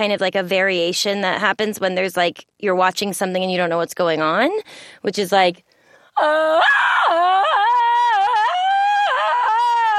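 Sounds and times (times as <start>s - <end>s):
speech: 0.0s - 7.2s
person letting out a Tarzan-style scream: 6.4s - 9.9s.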